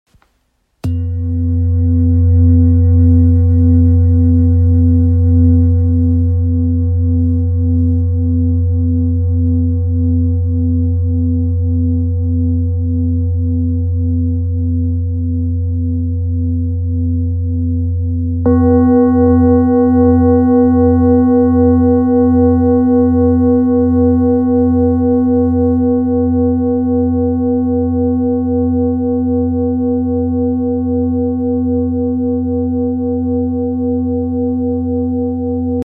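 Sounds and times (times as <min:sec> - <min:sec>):
Tibetan singing bowls: 0:00.8 - 0:35.8.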